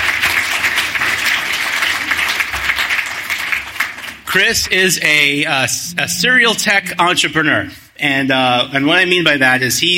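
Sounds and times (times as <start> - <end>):
crowd applause: 0.0 - 4.4
speech: 4.4 - 9.9.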